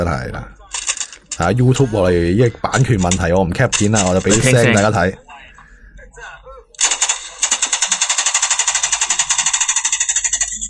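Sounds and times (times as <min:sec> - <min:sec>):
speech: 0:00.0 - 0:00.6, 0:01.4 - 0:05.2
WWII submachine gun with drum magazine automatic fire: 0:06.8 - 0:10.6.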